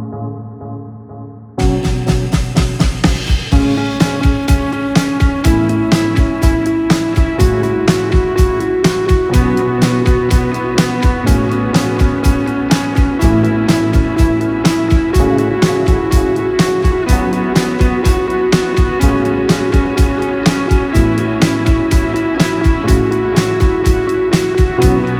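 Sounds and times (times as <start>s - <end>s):
rock music: 1.6s - 25.1s.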